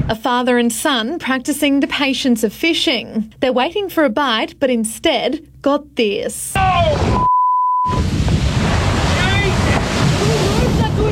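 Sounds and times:
speech: 0.1s - 7.3s
excited voices shouting: 6.6s - 7.2s
electronic beep: 7.1s - 8.0s
crashing whitewater from a breaching whale: 7.9s - 11.1s
heavy wind buffeting: 7.9s - 11.1s.

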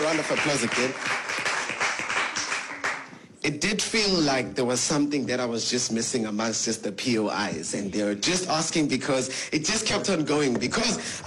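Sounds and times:
crowd applause: 0.0s - 3.2s
speech: 0.1s - 1.4s, 3.4s - 11.2s.

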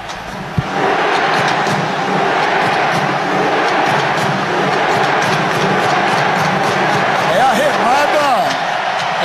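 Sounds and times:
football fans' chant in stadium: 0.6s - 9.2s.

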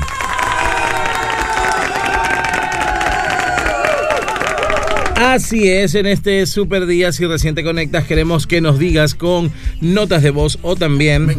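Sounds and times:
clapping: 0.0s - 5.3s
excited shouts: 0.0s - 5.3s
crowd cheering: 0.0s - 5.4s
whistles: 3.7s - 4.9s
speech: 5.2s - 11.3s.

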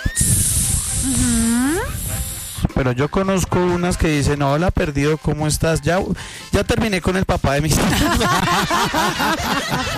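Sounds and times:
voice imitating a snake's hiss: 0.0s - 2.8s
speech: 1.0s - 2.0s, 2.8s - 9.9s
voiced tone gliding upward in pitch: 1.0s - 2.1s
laughter: 7.8s - 9.9s.

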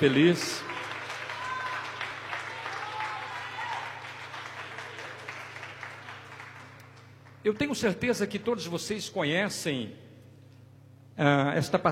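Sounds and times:
speech: 0.0s - 0.7s, 7.4s - 10.1s, 11.2s - 11.8s
audience applauding: 0.0s - 7.7s.

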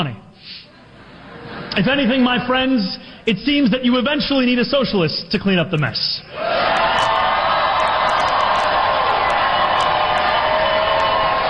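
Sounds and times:
speech: 0.0s - 0.6s, 1.8s - 6.7s
audience cheering: 6.3s - 11.4s.

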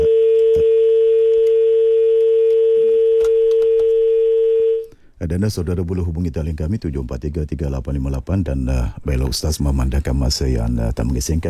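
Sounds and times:
telephone dial tone after a call is cut off: 0.0s - 4.9s
speech: 5.3s - 11.4s.

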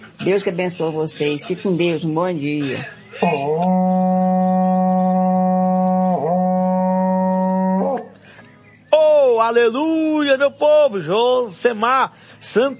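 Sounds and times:
speech: 0.2s - 4.0s, 9.5s - 12.7s
laughter: 1.3s - 4.8s
berrante cattle horn blast: 3.2s - 8.1s.

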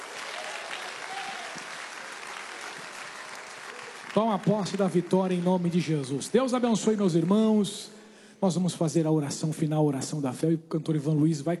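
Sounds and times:
audience applause: 0.0s - 7.6s
speech: 4.1s - 11.5s.

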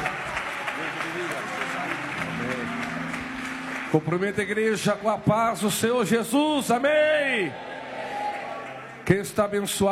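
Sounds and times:
church audience applauding: 0.0s - 5.6s, 8.1s - 9.1s
speech: 3.9s - 7.7s, 9.1s - 9.9s.

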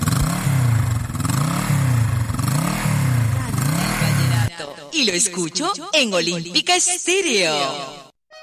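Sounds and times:
Suzuki DR160X motorcycle engine revving: 0.0s - 4.5s
speech: 5.0s - 8.1s.

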